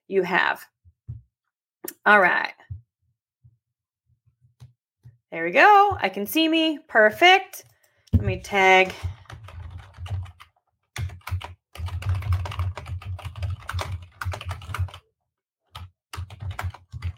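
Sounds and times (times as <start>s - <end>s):
speech: 0.1s - 0.8s, 1.8s - 2.6s, 5.3s - 9.1s
computer keyboard typing: 8.8s - 15.0s, 15.7s - 17.1s.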